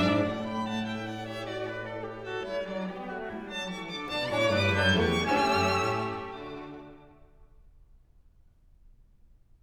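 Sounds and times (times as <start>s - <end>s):
string quartet playing: 0.0s - 7.2s.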